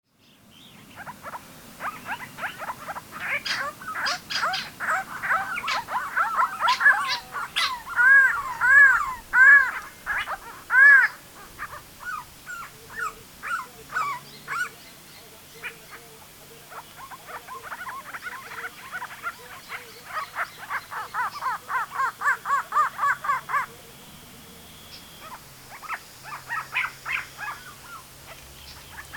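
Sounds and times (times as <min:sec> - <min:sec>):
Grey-crowned babbler Pomatostomus temporalis calls: 0:00.6 - 0:23.9, 0:24.7 - 0:29.1.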